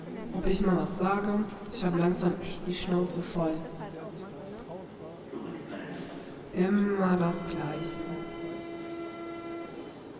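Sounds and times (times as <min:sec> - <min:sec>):
speech: 0:00.4 - 0:03.9, 0:06.6 - 0:08.2
train horn steady clear tone: 0:06.9 - 0:10.1.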